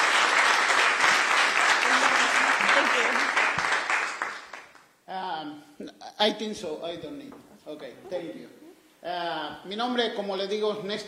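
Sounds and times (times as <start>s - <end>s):
church talk audience applause thanking an interpreter: 0.0s - 4.8s
speech: 6.2s - 11.0s.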